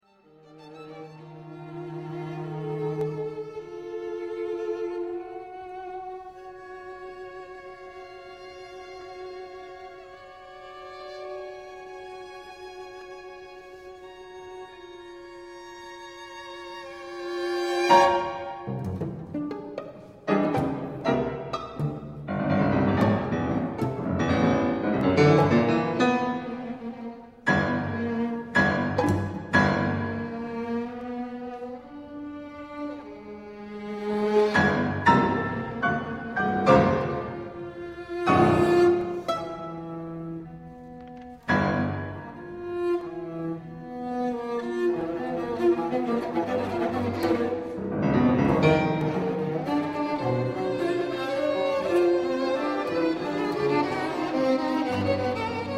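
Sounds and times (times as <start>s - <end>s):
piano quartet: 0.8s - 55.7s.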